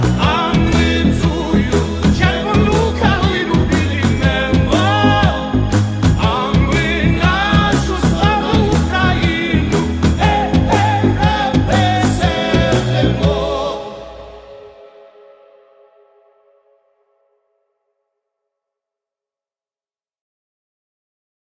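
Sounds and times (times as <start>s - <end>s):
Ukrainian folk song army remix: 0.0s - 16.2s.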